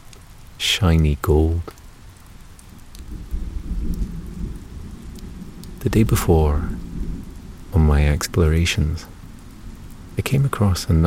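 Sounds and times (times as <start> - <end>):
rain: 0.0 - 11.0
speech: 0.8 - 1.8, 5.8 - 6.8, 7.8 - 9.1, 10.2 - 11.0
thunder: 3.0 - 7.4.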